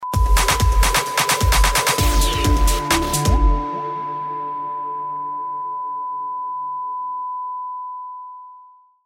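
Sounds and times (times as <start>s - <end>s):
jingle: 0.6s - 5.8s.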